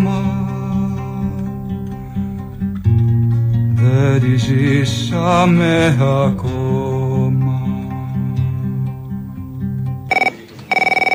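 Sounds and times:
low sustained music: 0.0 - 10.1
speech: 4.2 - 6.9
telephone ringing with a rapidly trilling high electronic tone: 10.1 - 11.1.

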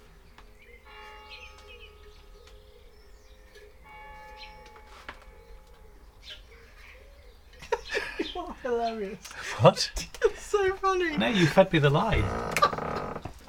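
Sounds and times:
bells ringing: 0.0 - 8.4
laughter: 7.6 - 13.2
speech: 8.4 - 12.6.

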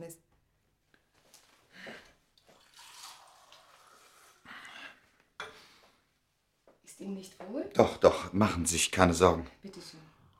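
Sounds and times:
water pouring into a glass: 2.4 - 4.5
speech: 7.0 - 10.0.

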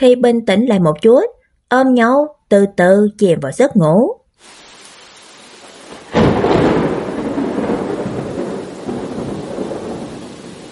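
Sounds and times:
speech: 0.0 - 4.6
pouring rain under a dark sky: 4.4 - 10.7.

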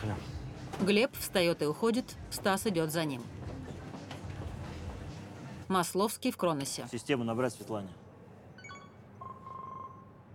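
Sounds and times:
speech: 0.8 - 3.4, 5.7 - 8.0
smart bracelet ringing with an incoming call in an empty kitchen: 8.5 - 10.3.

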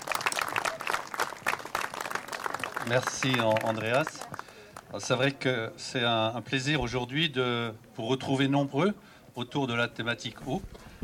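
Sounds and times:
audience applause at a public meeting on water issues: 0.0 - 4.9
speech: 2.8 - 10.9.

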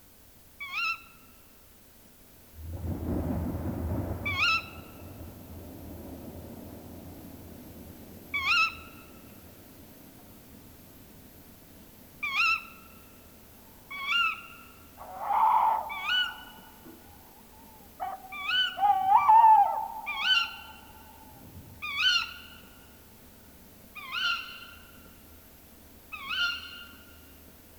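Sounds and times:
hiss: 1.2 - 27.7
low rumble: 2.6 - 10.9
Tawny Owl calling: 4.0 - 5.8, 6.4 - 9.6, 13.8 - 22.6.

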